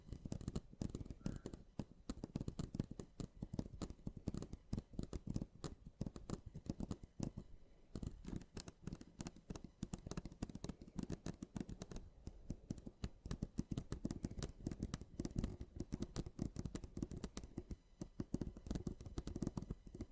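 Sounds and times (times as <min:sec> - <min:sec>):
mini scratching ticks and rasps: 0:00.1 - 0:20.1.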